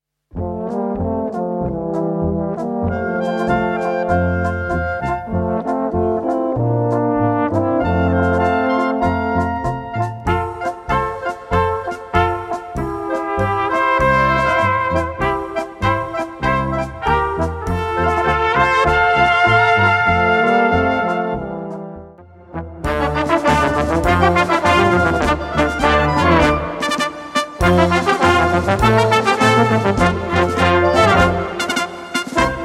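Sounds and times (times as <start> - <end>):
South Bohemian polka music: 0.3 - 32.6.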